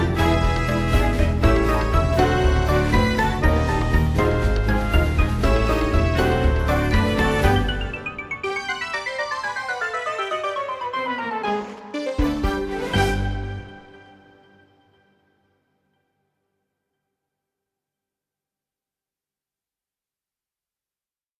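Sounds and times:
circus ambience: 0.0 - 14.0.

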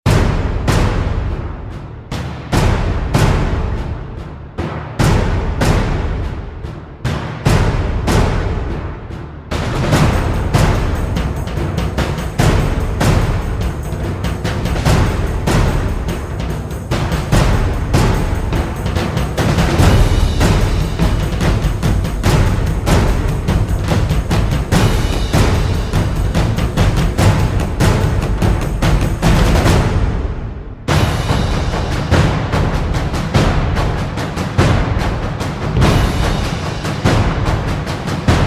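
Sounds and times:
drums: 0.0 - 38.4.

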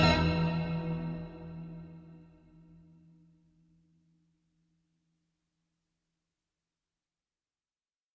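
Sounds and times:
uneasy ambient music: 0.0 - 2.3.

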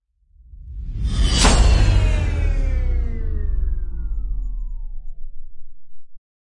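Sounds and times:
downer hit: 1.0 - 4.1.

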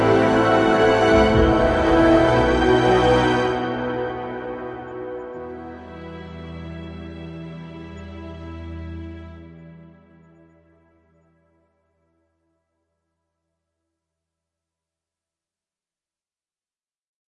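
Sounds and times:
dramatic ambient music: 0.0 - 11.5.

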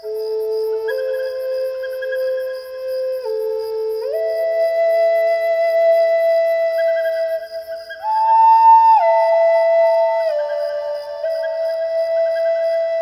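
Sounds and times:
nature sounds: 0.0 - 12.9
relaxing flute music for sleep: 0.0 - 12.9.

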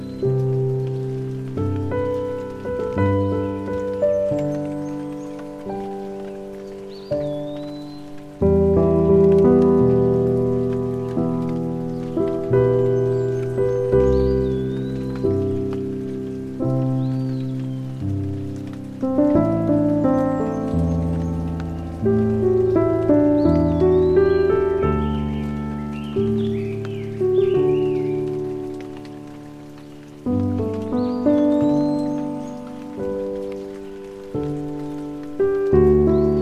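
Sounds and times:
nature sounds: 0.0 - 36.3
piano music: 0.0 - 36.3
rain: 0.0 - 36.3.

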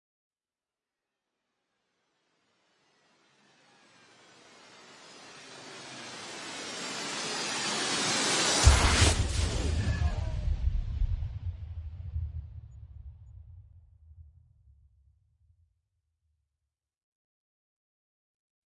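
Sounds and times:
meteor storm: 5.3 - 13.5.

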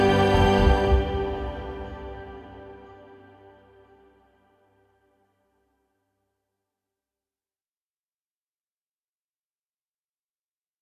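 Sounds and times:
gliding ambient music: 0.0 - 5.0.

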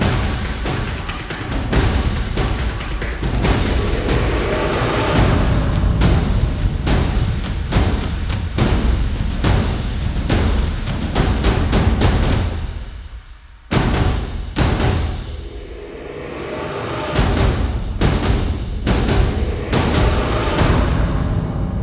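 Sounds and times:
percussion playing: 0.0 - 21.7.

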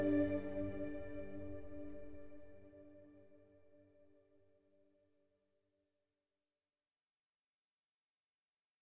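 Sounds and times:
ambient music: 0.0 - 3.1.

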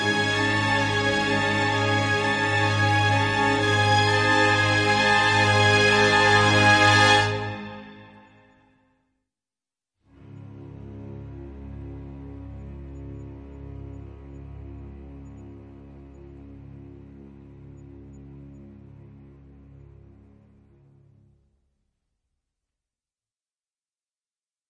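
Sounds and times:
orchestral music: 0.0 - 8.6, 10.2 - 21.4.

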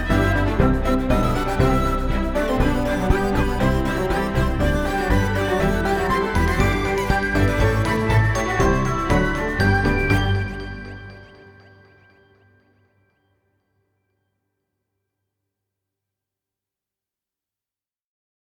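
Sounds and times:
cheerful ambient music: 0.0 - 13.0.

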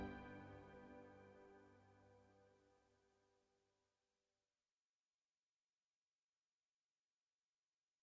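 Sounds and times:
lovely ambient music: 0.0 - 2.3.

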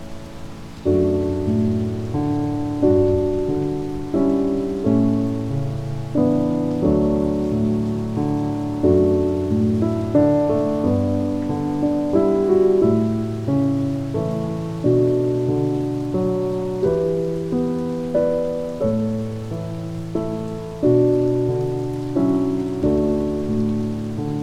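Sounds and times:
calming piano music: 0.0 - 24.4
rain: 0.0 - 24.4.

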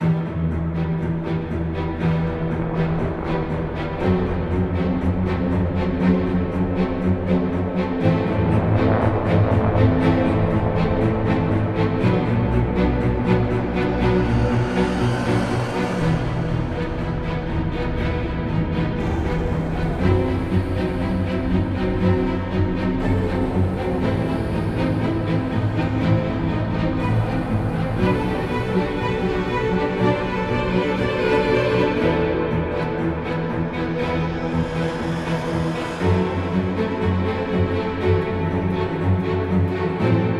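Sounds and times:
ambient music: 0.0 - 40.3.

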